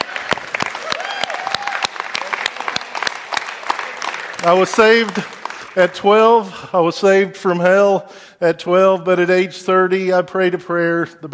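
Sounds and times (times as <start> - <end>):
audience clapping: 0.0 - 6.5
speech: 4.4 - 11.3.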